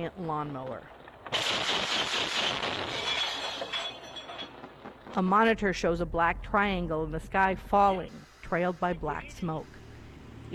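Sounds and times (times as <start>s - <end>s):
speech: 0.0s - 3.9s, 5.1s - 9.8s
mounted machine gun firing at drone: 1.2s - 3.5s.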